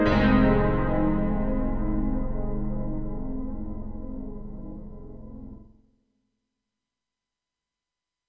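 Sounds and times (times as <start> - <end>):
synthesizer piano: 0.0 - 5.8.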